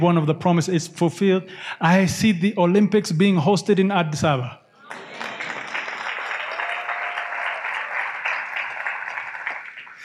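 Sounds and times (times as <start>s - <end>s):
speech: 0.0s - 5.1s
audience clapping: 4.8s - 10.0s.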